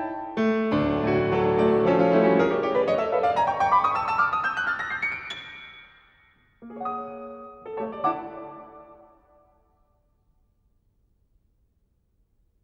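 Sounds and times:
presto piano improvisation in D major: 0.0s - 6.0s, 6.6s - 9.4s.

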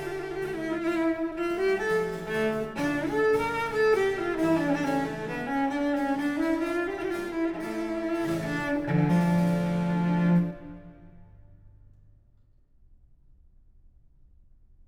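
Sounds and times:
cello: 0.0s - 11.6s.

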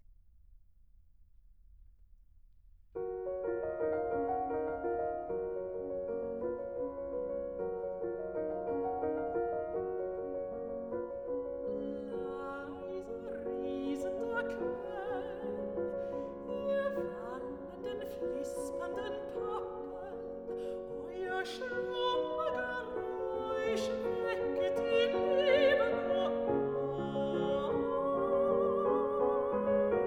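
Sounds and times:
piano: 2.6s - 30.0s
person singing: 11.7s - 30.0s.

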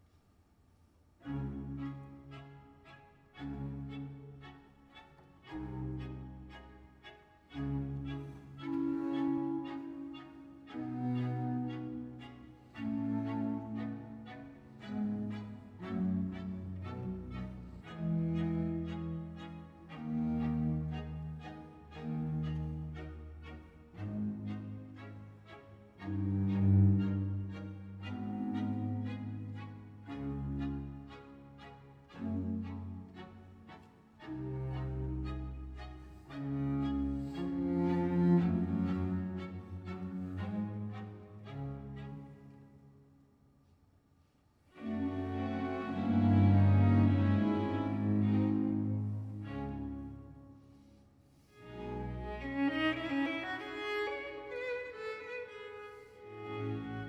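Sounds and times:
concerto grosso in F major: 1.2s - 43.3s, 44.6s - 57.0s.

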